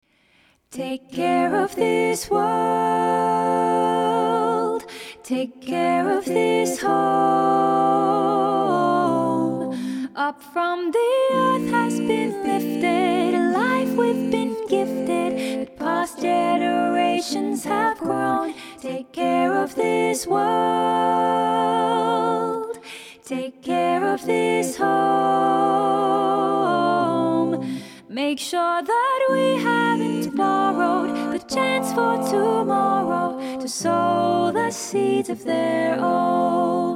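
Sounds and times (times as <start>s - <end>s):
a cappella choir: 0.0s - 36.9s.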